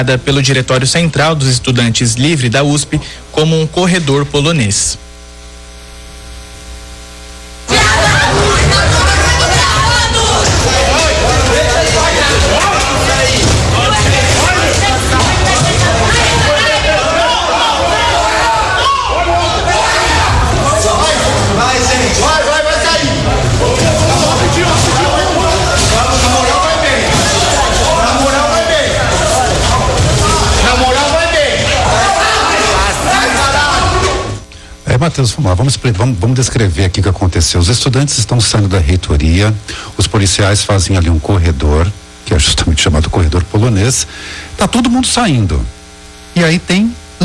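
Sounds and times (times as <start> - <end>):
speech: 0.0 - 5.0, 35.0 - 45.8, 46.4 - 47.2
crowd running during protest: 7.7 - 34.5.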